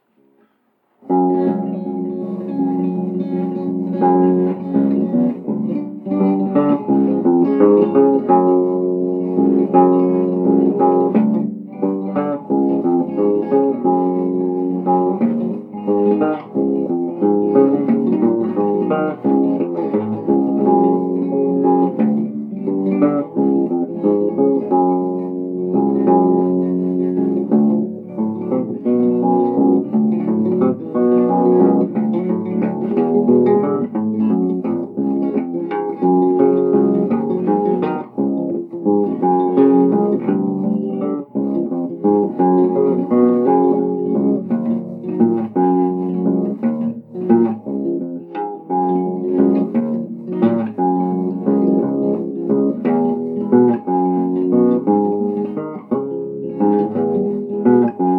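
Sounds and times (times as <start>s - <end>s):
instrumental music: 0.0s - 58.1s.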